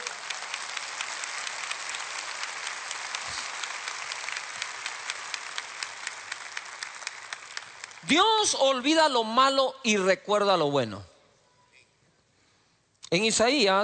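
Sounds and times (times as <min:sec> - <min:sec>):
audience applause for fathers: 0:00.0 - 0:08.5
speech: 0:08.0 - 0:11.1, 0:13.1 - 0:13.8.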